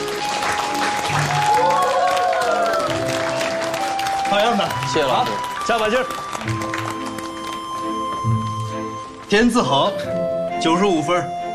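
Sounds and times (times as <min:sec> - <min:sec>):
group applauding: 0:00.0 - 0:09.2
speech: 0:04.6 - 0:06.8, 0:09.3 - 0:11.4.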